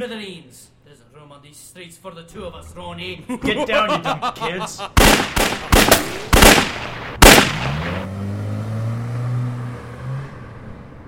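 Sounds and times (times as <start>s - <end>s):
speech: 0.0s - 8.4s
laughter: 3.0s - 5.0s
gunshots from a gun in a dramatized shootout: 5.0s - 8.1s.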